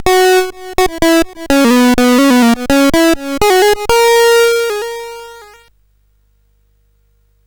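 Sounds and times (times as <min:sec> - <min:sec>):
arcade music on SID CSG8580R5 chip: 0:00.0 - 0:05.6.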